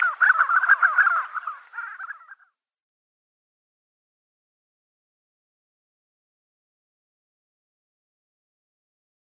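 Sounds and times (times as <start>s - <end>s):
spotted sandgrouse calling: 0.0s - 2.6s.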